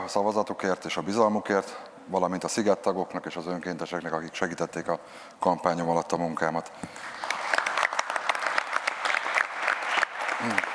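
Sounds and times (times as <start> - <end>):
speech: 0.0 - 7.2, 10.4 - 10.7
applause: 6.9 - 10.7.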